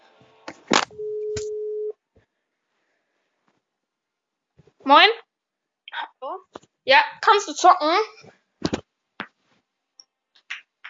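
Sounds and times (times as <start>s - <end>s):
phone ringing tone: 1.0s - 1.9s
speech: 4.9s - 5.2s, 6.9s - 8.4s.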